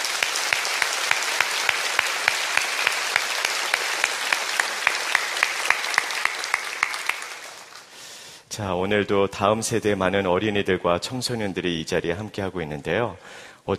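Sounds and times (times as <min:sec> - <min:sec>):
audience applause: 0:00.0 - 0:08.0
speech: 0:08.6 - 0:13.7.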